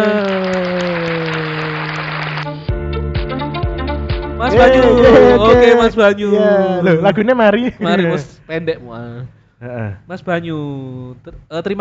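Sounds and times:
applause: 0:00.0 - 0:02.7
speech: 0:04.5 - 0:11.7.

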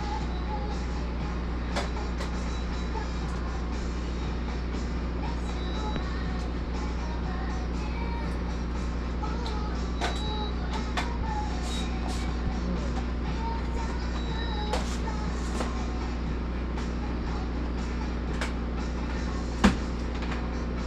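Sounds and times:
low engine-like hum inside a mobile blood donation bus: 0:00.0 - 0:20.8.

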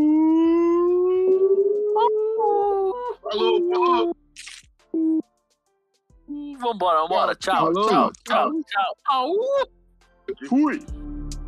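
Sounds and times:
voice imitating a siren: 0:00.0 - 0:04.1
speech: 0:06.6 - 0:11.1.

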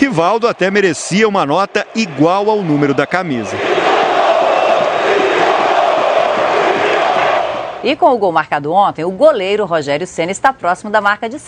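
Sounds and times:
speech: 0:00.0 - 0:03.7, 0:07.8 - 0:11.4
football fans cheering in a stadium: 0:00.0 - 0:08.0.

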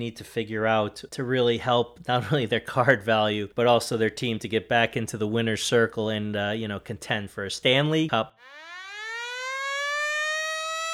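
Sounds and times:
speech: 0:00.0 - 0:08.6
hockey period-ending buzzer blaring: 0:08.4 - 0:10.9.

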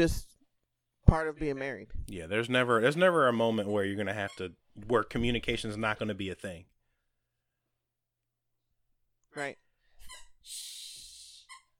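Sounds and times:
speech: 0:00.0 - 0:00.3, 0:01.1 - 0:06.7, 0:09.3 - 0:09.6
dog squeaking a chewed squeaky toy: 0:09.4 - 0:10.4, 0:11.5 - 0:11.7.

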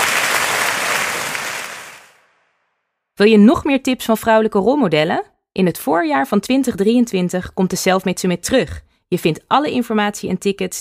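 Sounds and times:
audience applause: 0:00.0 - 0:02.2
speech: 0:03.2 - 0:10.8.

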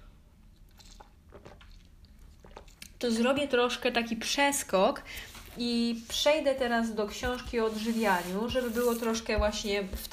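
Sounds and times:
sip of yerba mate: 0:00.7 - 0:03.0
speech: 0:03.0 - 0:10.1.

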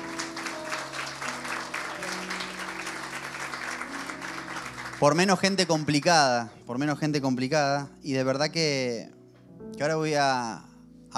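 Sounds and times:
audience applause: 0:00.0 - 0:06.5
speech: 0:05.0 - 0:09.2, 0:09.8 - 0:11.1.

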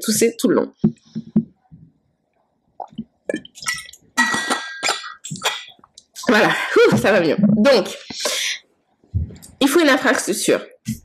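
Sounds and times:
speech: 0:00.0 - 0:01.3, 0:06.3 - 0:08.3, 0:09.6 - 0:11.0
person gulping water: 0:02.8 - 0:06.4.

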